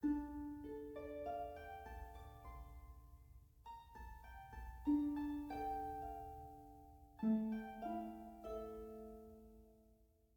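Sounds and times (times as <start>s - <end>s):
harp: 0.0s - 10.0s.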